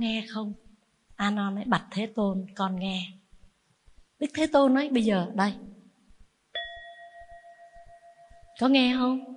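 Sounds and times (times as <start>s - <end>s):
speech: 0.0s - 3.2s, 4.2s - 5.7s, 8.6s - 9.3s
bell struck during a Buddhist teaching: 6.6s - 8.7s.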